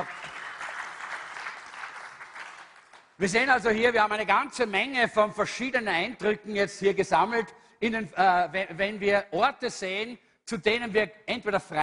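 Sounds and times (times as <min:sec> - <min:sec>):
audience applauding the assistants: 0:00.0 - 0:03.2
speech: 0:03.2 - 0:11.8.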